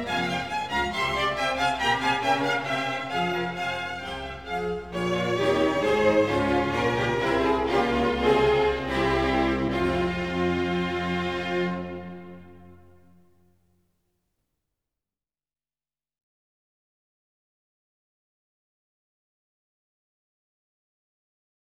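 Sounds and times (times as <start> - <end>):
concerto grosso in F minor, allemanda allegro: 0.0 - 13.2.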